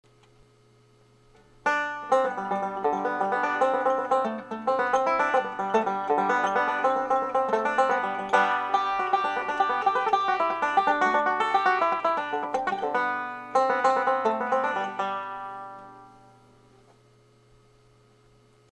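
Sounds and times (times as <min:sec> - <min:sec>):
banjo playing Irish music: 0:01.6 - 0:16.2.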